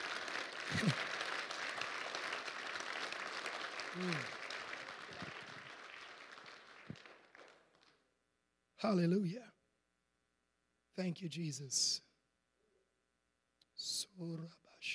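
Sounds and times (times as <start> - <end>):
audience clapping: 0.0 - 8.0
speech: 0.7 - 1.1, 4.0 - 4.4, 8.8 - 9.5, 11.0 - 12.0.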